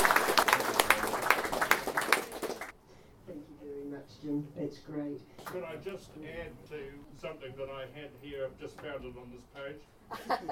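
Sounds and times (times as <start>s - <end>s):
audience round of applause: 0.0s - 2.7s
speech: 4.6s - 10.5s.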